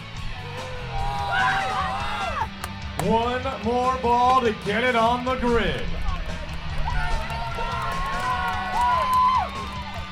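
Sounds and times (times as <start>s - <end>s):
crowd cheering and whooping at a World Long Drive golf event: 0.4s - 2.5s, 6.6s - 10.1s
speech: 3.0s - 5.9s.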